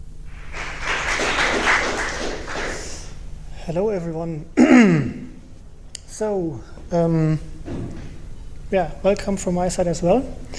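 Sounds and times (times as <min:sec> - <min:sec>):
audience applause welcoming a speaker: 0:00.3 - 0:03.2
speech: 0:03.7 - 0:05.2, 0:06.2 - 0:07.9, 0:08.7 - 0:10.5.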